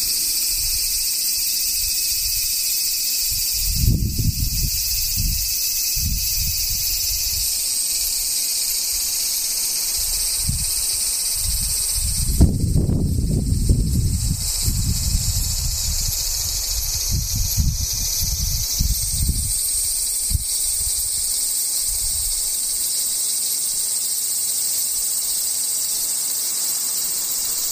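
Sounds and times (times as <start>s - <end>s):
cicadas buzzing: 0.0s - 27.7s
low rumbling gusts: 3.4s - 7.6s, 10.0s - 22.4s.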